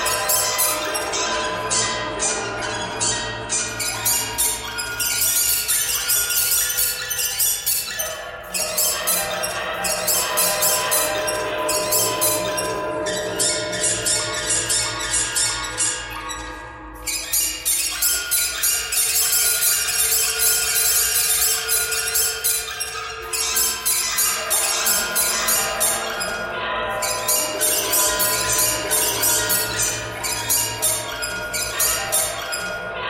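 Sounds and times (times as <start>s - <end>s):
birds: 0.0s - 33.0s.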